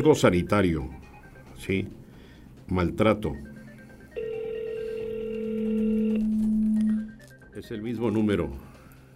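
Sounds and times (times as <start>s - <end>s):
speech: 0.0s - 1.0s, 1.6s - 2.0s, 2.7s - 3.5s, 7.6s - 8.7s
ringback tone of an unanswered phone call: 3.3s - 7.3s.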